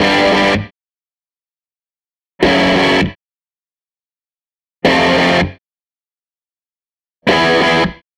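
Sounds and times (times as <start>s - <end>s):
SG electric guitar loop: 0.0s - 0.7s, 2.4s - 3.2s, 4.8s - 5.6s, 7.3s - 8.0s.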